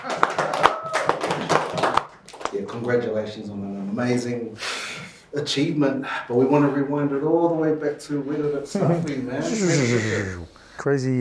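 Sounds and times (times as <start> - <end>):
small group hand clapping: 0.0 - 3.0
speech: 2.7 - 11.1.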